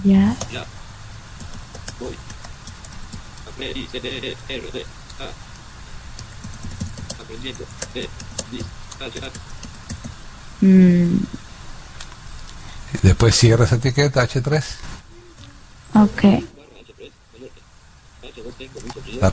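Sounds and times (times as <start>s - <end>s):
speech: 0.0s - 0.8s, 2.0s - 2.3s, 3.6s - 5.5s, 7.3s - 9.5s, 10.6s - 11.4s, 13.0s - 15.0s, 16.0s - 16.6s, 18.3s - 19.3s
typing on a computer keyboard: 1.4s - 3.2s, 6.2s - 10.1s.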